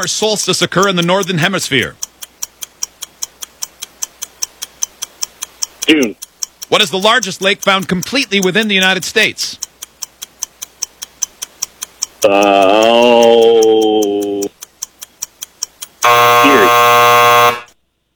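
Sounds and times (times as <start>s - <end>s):
speech: 0.0s - 2.1s, 5.9s - 9.6s, 12.2s - 12.8s
clock ticking: 0.0s - 17.8s
game show time-up buzzer: 16.0s - 17.8s.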